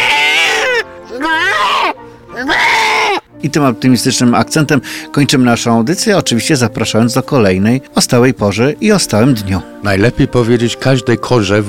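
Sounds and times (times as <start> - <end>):
goat bleating: 0.0 - 3.3
speech: 3.4 - 11.6.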